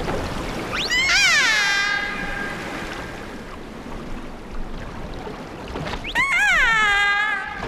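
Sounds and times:
mammal-eating killer whale calls and squeaks: 0:00.6 - 0:03.4, 0:05.9 - 0:07.6.

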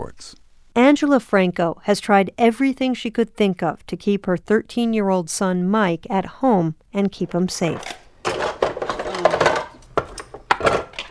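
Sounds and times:
speech: 0:00.2 - 0:08.0
plastic dishes clattering while emptying a dishwasher: 0:07.2 - 0:11.0.

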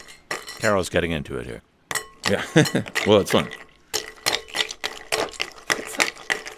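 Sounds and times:
speech: 0:00.6 - 0:01.7, 0:02.3 - 0:03.6
ice cubes cracked with an ice tapper: 0:02.9 - 0:06.5.

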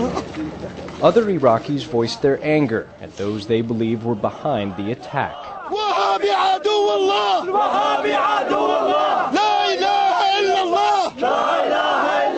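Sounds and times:
speech: 0:00.4 - 0:12.3
protesters chanting in the street: 0:03.2 - 0:12.3.

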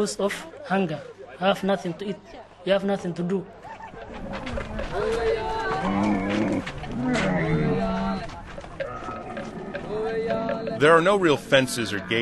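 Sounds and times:
speech: 0:00.0 - 0:07.7, 0:10.8 - 0:12.2
herds of camels bellowing at a watering hole in a refugee camp: 0:03.6 - 0:12.2.

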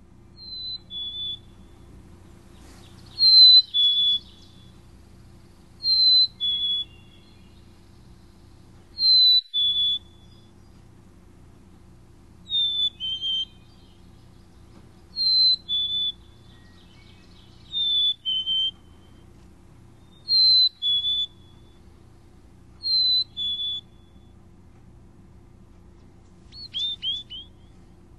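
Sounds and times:
black-capped chickadee Hey Sweetie song: 0:00.0 - 0:28.1.

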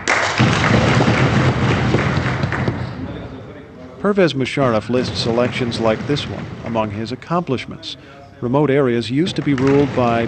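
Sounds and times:
voters pounding on wooden desks in applause: 0:00.1 - 0:03.1, 0:04.6 - 0:08.1, 0:09.2 - 0:10.2
speech: 0:04.0 - 0:10.2.

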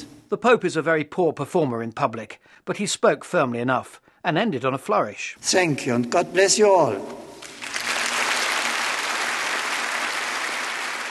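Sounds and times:
speech: 0:00.0 - 0:07.3
warm applause after a speech: 0:07.4 - 0:11.0.

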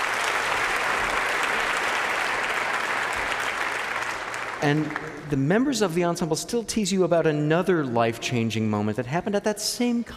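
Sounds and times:
audience applause: 0:00.0 - 0:05.5
speech: 0:04.6 - 0:10.1.

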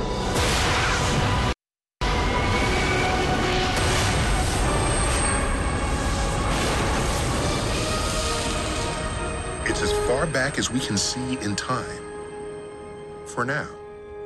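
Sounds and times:
cinematic explosion sound effect: 0:00.2 - 0:09.9
speech: 0:10.2 - 0:12.0, 0:13.3 - 0:13.8.

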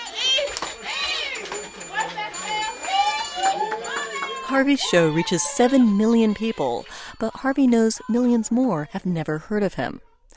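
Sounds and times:
office staff cheering: 0:00.0 - 0:06.9
speech: 0:04.5 - 0:10.1.

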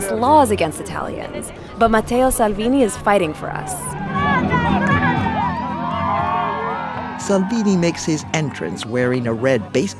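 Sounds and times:
speech: 0:00.1 - 0:05.0, 0:07.2 - 0:09.9
exuberant rally crowd cheering and shouting: 0:02.2 - 0:09.4.

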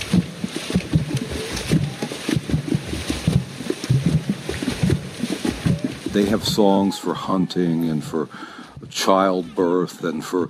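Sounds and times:
hands slapping water in rhythm: 0:00.0 - 0:06.7
speech: 0:06.2 - 0:10.4.

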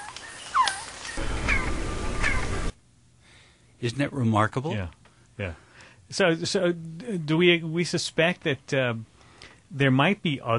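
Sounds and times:
quetzal chirping: 0:00.0 - 0:02.7
speech: 0:03.8 - 0:09.1, 0:09.7 - 0:10.5.

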